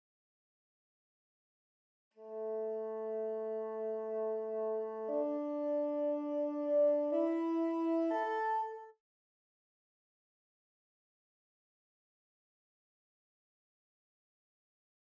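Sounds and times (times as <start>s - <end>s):
bassoon: 2.2s - 9.0s.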